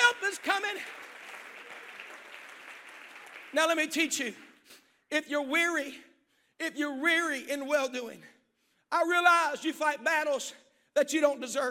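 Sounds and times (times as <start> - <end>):
audience clapping hands: 0.0 - 4.7
speech: 3.5 - 4.5, 5.1 - 11.6.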